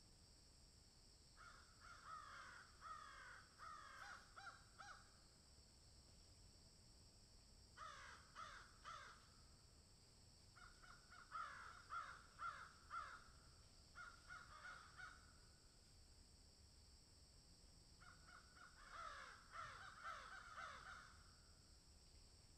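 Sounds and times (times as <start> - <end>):
crow giving hoarse downslurred caws: 1.4 - 5.1, 7.8 - 9.4, 10.6 - 13.3, 14.0 - 15.3, 18.0 - 21.2.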